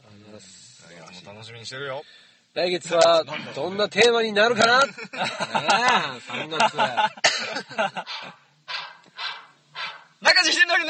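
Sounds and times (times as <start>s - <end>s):
speech: 0.4s - 8.4s, 10.2s - 10.8s
laughter: 4.6s - 8.4s
dog barking in a radio jingle: 8.1s - 10.2s.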